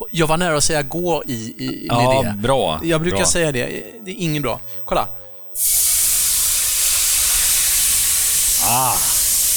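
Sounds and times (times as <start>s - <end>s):
speech: 0.0s - 6.1s, 8.6s - 9.1s
white wine sizzling in a pan: 5.6s - 9.5s.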